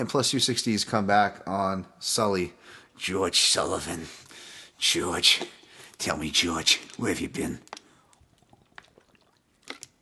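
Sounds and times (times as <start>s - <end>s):
speech: 0.0s - 7.8s
person drinking water: 6.8s - 10.0s.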